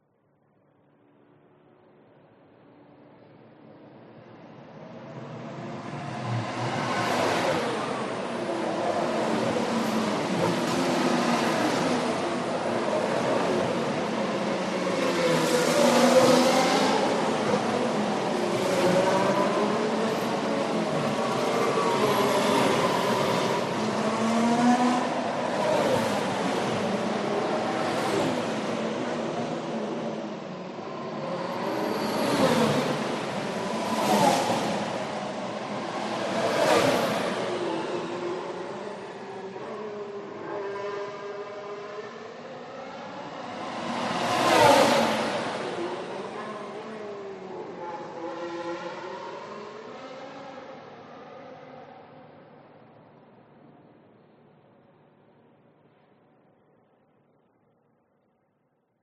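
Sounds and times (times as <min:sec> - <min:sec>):
F1 race car passing at speed on race track: 0:05.7 - 0:52.0.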